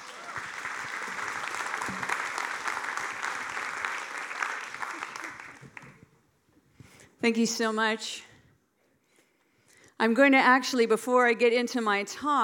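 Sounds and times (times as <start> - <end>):
audience applause welcoming a speaker at a church gathering: 0.0 - 6.0
speech: 7.2 - 8.3, 10.0 - 12.4.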